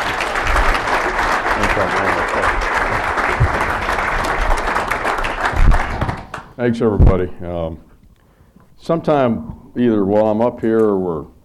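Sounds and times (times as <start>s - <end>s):
audience applause: 0.0s - 6.5s
speech: 6.6s - 7.9s, 8.8s - 11.3s.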